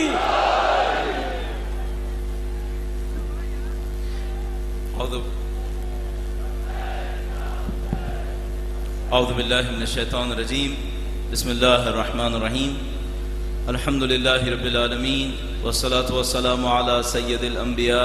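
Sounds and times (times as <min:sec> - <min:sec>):
crowd at an Urdu religious gathering shouting back to Islamic slogans: 0:00.0 - 0:02.1, 0:05.9 - 0:08.5
steady low electrical hum: 0:00.0 - 0:18.0
speech: 0:09.1 - 0:12.9, 0:13.6 - 0:18.0.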